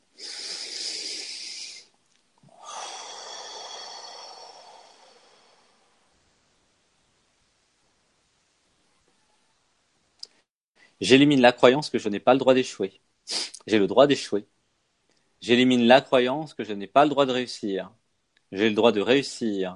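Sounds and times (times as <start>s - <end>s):
deep breath: 0.1s - 1.9s, 2.5s - 6.2s
speech: 11.0s - 14.6s, 15.4s - 19.7s.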